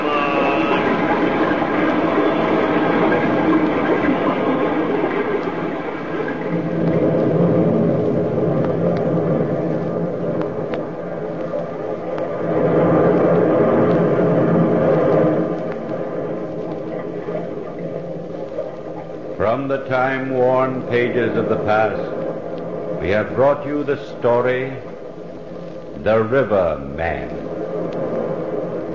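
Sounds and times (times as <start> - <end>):
distant deep rumble of the sea: 0.0 - 28.9
speech: 19.7 - 22.2, 23.0 - 24.9, 26.0 - 27.4.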